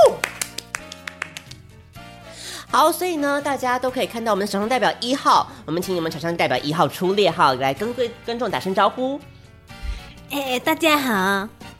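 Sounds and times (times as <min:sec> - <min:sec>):
audience hand claps at a sponsored event: 0:00.0 - 0:01.8
music: 0:00.0 - 0:11.7
speech: 0:02.7 - 0:09.4, 0:10.3 - 0:11.6.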